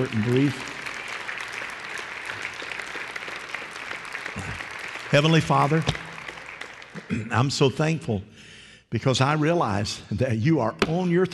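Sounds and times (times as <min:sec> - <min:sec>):
speech: 0:00.0 - 0:00.8, 0:05.1 - 0:06.0, 0:07.1 - 0:11.3
audience clapping: 0:00.0 - 0:07.8.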